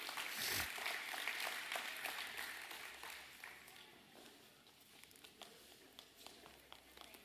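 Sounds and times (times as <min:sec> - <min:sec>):
audience applause: 0:00.0 - 0:03.8.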